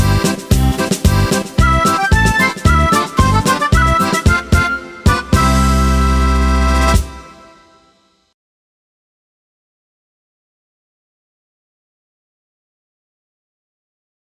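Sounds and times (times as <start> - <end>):
adventure karaoke backing track: 0.0 - 7.6.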